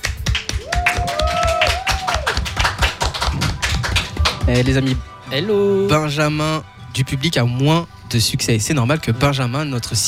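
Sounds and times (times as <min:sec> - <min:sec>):
audience applause: 0:00.0 - 0:04.9
speech: 0:04.5 - 0:10.0.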